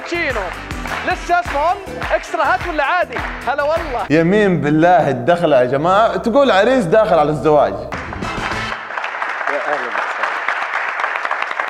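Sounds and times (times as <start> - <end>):
crowd applauding for an entrance: 0.0 - 4.0, 7.9 - 11.6
speech: 0.1 - 8.0.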